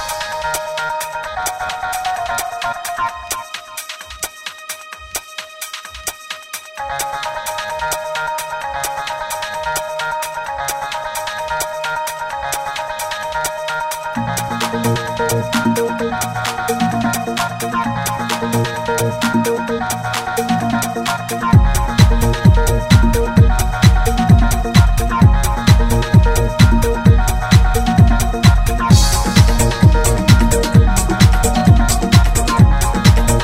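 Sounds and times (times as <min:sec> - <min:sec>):
satin ambience: 0:14.2 - 0:33.4.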